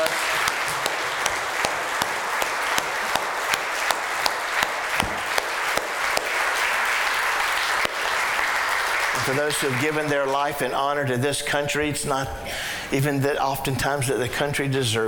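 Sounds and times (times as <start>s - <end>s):
audience applause: 0.0s - 10.4s
speech: 9.3s - 15.0s.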